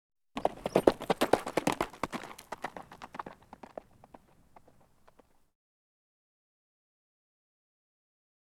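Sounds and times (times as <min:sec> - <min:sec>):
horse hoofbeats cantering on dirt: 0:00.4 - 0:05.5.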